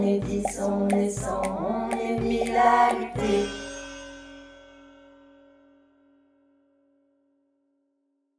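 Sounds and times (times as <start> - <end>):
person singing a melody: 0.0 - 3.6.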